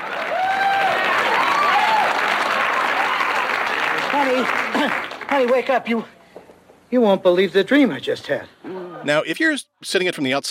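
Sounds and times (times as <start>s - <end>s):
studio audience applause: 0.0s - 5.7s
speech: 4.3s - 6.2s, 6.9s - 10.4s.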